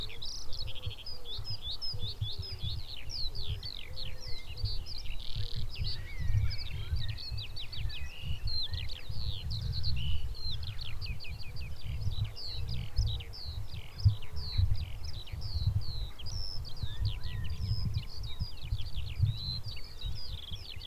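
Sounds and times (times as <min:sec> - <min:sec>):
Eurasian skylark singing: 0:00.0 - 0:20.8
wind rumbling: 0:04.5 - 0:20.8.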